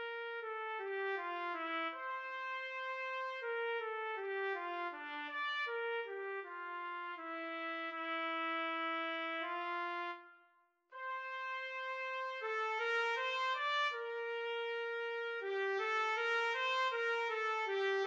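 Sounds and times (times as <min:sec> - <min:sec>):
trumpet in a trumpet-cello duet: 0:00.0 - 0:18.0.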